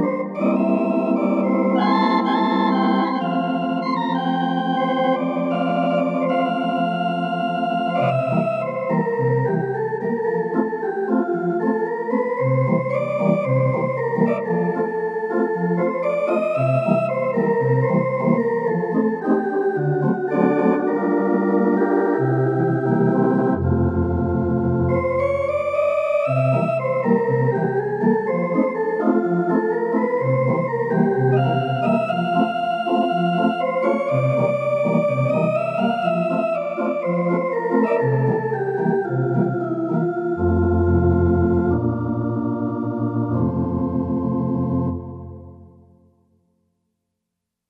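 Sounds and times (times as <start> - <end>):
theatre organ synth patch: 0.0 - 45.9.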